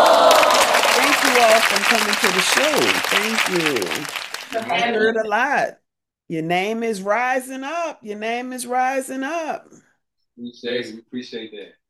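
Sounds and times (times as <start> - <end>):
audience applause welcoming guest performers to a New Orleans show: 0.0 - 4.9
speech: 1.4 - 11.8.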